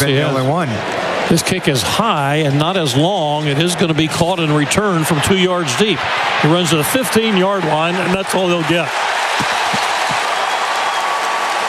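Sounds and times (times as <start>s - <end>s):
speech: 0.0s - 9.5s
stadium crowd cheering and applauding at a college football game after a kickoff return: 0.2s - 11.6s.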